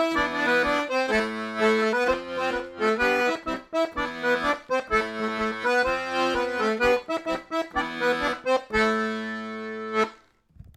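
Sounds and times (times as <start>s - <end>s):
laride 8 temps dance theme: 0.0s - 10.2s.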